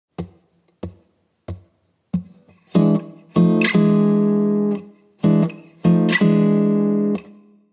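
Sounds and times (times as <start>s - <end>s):
blues guitar turnaround: 0.2s - 7.4s.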